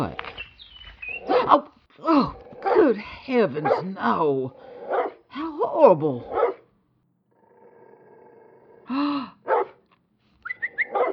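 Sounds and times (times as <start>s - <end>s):
speech: 0.0s - 0.2s, 1.5s - 1.7s, 2.9s - 4.7s, 5.8s - 6.4s, 8.9s - 9.4s
dog barking and yelping: 1.0s - 1.8s, 2.6s - 3.0s, 3.6s - 5.2s, 6.2s - 6.6s, 9.5s - 9.8s, 10.5s - 11.1s.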